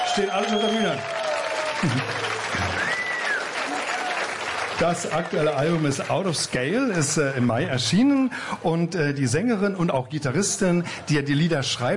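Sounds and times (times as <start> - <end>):
audience applause: 0.0 - 8.3
speech: 0.2 - 1.2, 1.8 - 3.0, 4.8 - 11.9.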